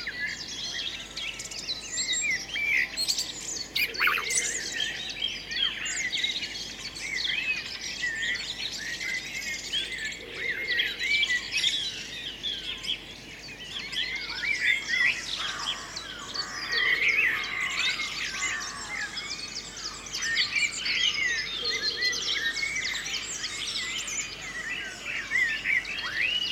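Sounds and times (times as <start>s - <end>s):
birds singing: 0.0s - 26.5s.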